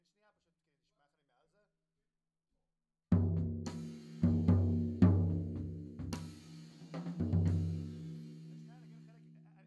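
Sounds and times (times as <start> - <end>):
floor tom drum: 3.2 - 9.0.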